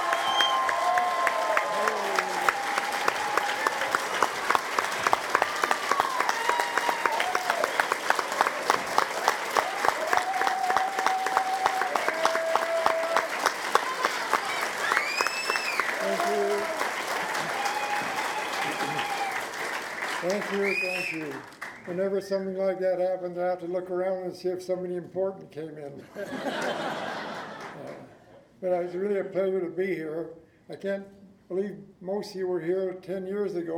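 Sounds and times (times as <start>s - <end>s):
audience applause welcoming a guest speaker at a roller coaster fan gathering: 0.0s - 21.8s
laughter: 18.5s - 19.2s, 26.0s - 28.2s
speech: 21.1s - 27.2s, 28.6s - 33.7s.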